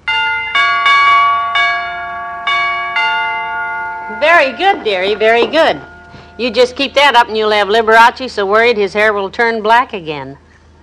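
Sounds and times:
door chimes ringing: 0.0s - 7.4s
speech: 4.2s - 10.8s.

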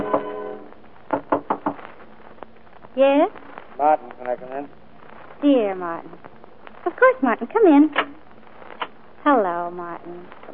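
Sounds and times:
knocking on a door: 1.1s - 1.8s
speech: 3.0s - 4.8s, 5.4s - 8.2s, 9.2s - 10.5s.

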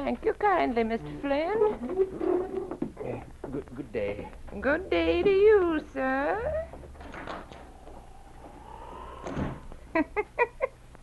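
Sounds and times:
speech: 0.0s - 7.6s, 10.0s - 10.5s
cabin door creaking open: 6.4s - 9.8s.

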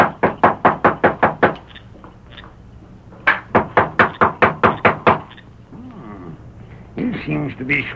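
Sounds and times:
knocking on a door: 0.0s - 1.6s, 3.2s - 5.3s
speech: 7.5s - 7.9s.

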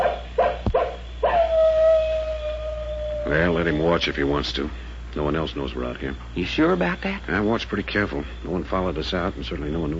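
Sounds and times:
wolf yelping and howling: 0.0s - 4.5s
speech: 3.6s - 9.9s.

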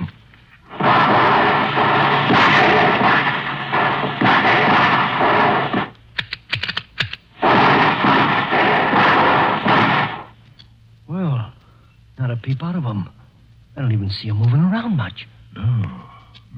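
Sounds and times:
volleys of rifle fire: 0.6s - 6.0s, 7.4s - 10.4s
speech: 12.5s - 13.2s, 13.8s - 16.5s.

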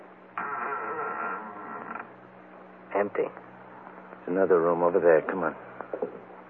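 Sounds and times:
door pushed open with a strained creak: 0.3s - 2.2s
speech: 3.0s - 3.5s, 4.3s - 6.2s.

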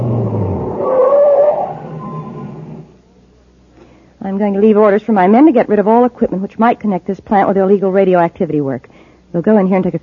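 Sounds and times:
truck engine as the truck stops: 0.0s - 3.0s
speech: 4.4s - 10.0s.

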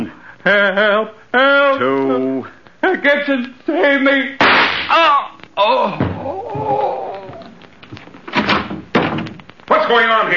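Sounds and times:
speech: 0.4s - 6.9s, 9.9s - 10.3s
gunshot in a radio drama: 4.4s - 5.0s
thumps and scuffling: 4.7s - 9.7s
people shouting: 4.9s - 7.5s.

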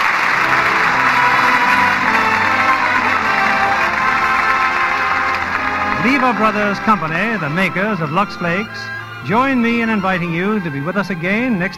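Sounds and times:
studio audience applause: 0.0s - 8.6s
speech: 6.0s - 11.7s.

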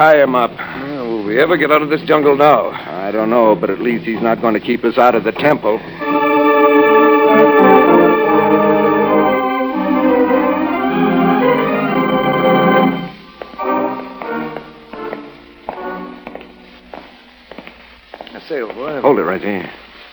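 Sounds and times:
speech: 0.0s - 6.2s, 18.9s - 19.8s
sustained musical drone: 2.1s - 17.2s
echoing footsteps: 13.1s - 18.9s.

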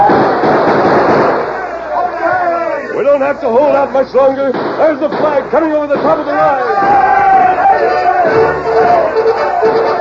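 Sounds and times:
gunfire barrage in a radio drama battle: 0.0s - 1.9s, 4.4s - 9.9s
speech: 3.1s - 7.2s.

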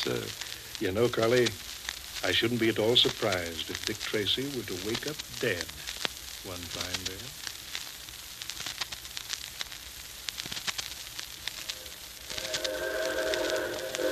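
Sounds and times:
speech: 0.0s - 7.4s
steam locomotive whistle: 11.7s - 14.1s
approaching 4-6-4 Hudson-type steam locomotive chuffing: 12.2s - 14.1s.

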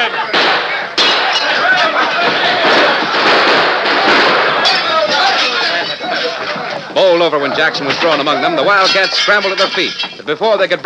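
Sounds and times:
clamor of voices: 0.0s - 10.8s
gunshots in a Lone Ranger radio drama shootout: 0.1s - 6.6s
speech: 7.2s - 10.8s.

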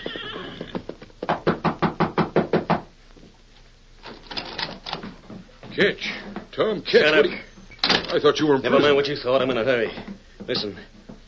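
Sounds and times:
knocking on a rear door: 1.2s - 2.9s
speech: 5.8s - 7.5s, 8.1s - 10.9s.

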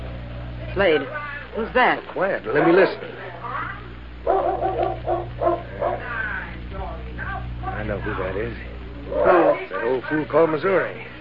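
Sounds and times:
speech: 0.8s - 3.4s, 7.9s - 11.1s
dog barking: 4.2s - 6.2s, 9.1s - 9.7s.

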